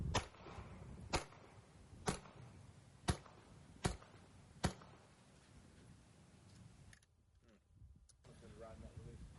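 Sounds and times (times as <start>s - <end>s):
rifle shots with supersonic and subsonic rounds, unsuppressed and suppressed: 0.1s - 5.1s.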